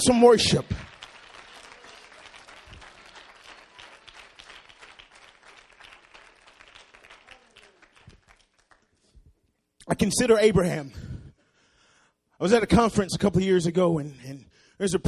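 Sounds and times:
speech: 0:00.0 - 0:00.9, 0:10.0 - 0:11.1, 0:12.4 - 0:15.0
audience clapping hands: 0:00.0 - 0:09.6.

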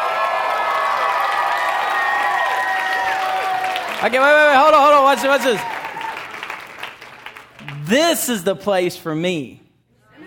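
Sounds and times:
crowd cheering hooray: 0:00.0 - 0:06.8
speech: 0:04.0 - 0:05.8, 0:07.9 - 0:09.6.

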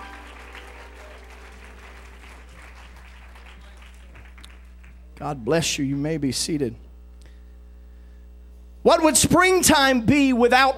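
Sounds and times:
audience clapping hands in praise: 0:00.0 - 0:05.2
low hum: 0:00.0 - 0:10.7
speech: 0:05.2 - 0:06.8, 0:08.9 - 0:10.7.

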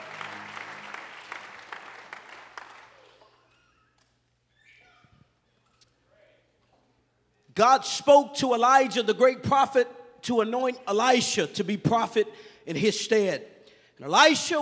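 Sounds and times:
audience hand clapping: 0:00.0 - 0:04.1
speech: 0:07.6 - 0:14.6.

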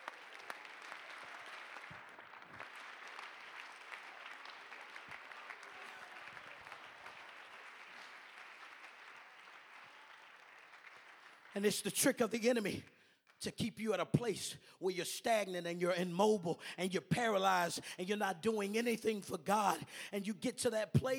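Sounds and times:
audience clapping: 0:00.0 - 0:13.5
speech: 0:11.6 - 0:21.1.

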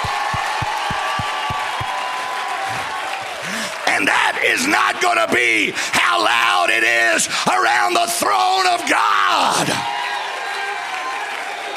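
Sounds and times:
audience clapping: 0:00.0 - 0:05.9, 0:09.6 - 0:11.7
audience shouting: 0:00.0 - 0:11.7
speech: 0:04.0 - 0:10.0.

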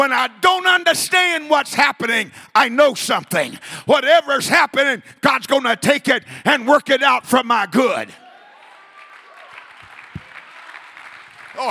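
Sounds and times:
speech: 0:00.0 - 0:08.2, 0:11.6 - 0:11.7
audience clapping: 0:08.4 - 0:11.7.

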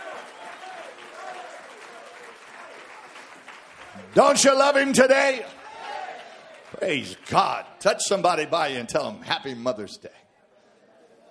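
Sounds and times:
audience clapping hands: 0:00.0 - 0:08.5
speech: 0:04.0 - 0:05.6, 0:06.8 - 0:10.2.

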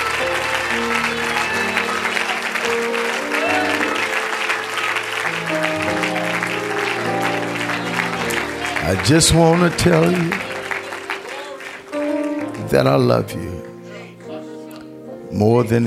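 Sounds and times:
audience clapping: 0:00.0 - 0:14.4
sustained organ or keyboard chords: 0:00.0 - 0:15.8
speech: 0:08.9 - 0:10.4, 0:12.7 - 0:13.7, 0:15.3 - 0:15.8.

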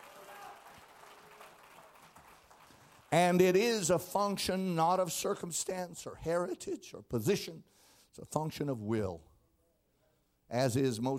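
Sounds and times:
audience clapping: 0:00.0 - 0:03.6
speech: 0:03.1 - 0:09.3, 0:10.5 - 0:11.1.

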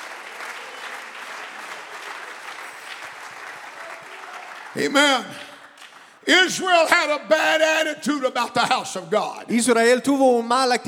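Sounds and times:
audience clapping: 0:00.0 - 0:07.1
speech: 0:04.7 - 0:05.5, 0:06.3 - 0:10.8.

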